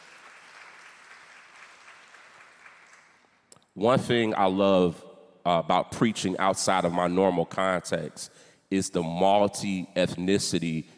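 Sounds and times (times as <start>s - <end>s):
audience applauding: 0.0s - 3.4s
speech: 3.8s - 10.9s.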